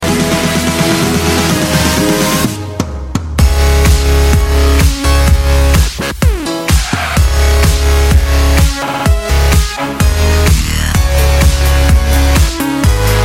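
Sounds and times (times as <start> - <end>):
dubstep music: 0.0 - 13.2.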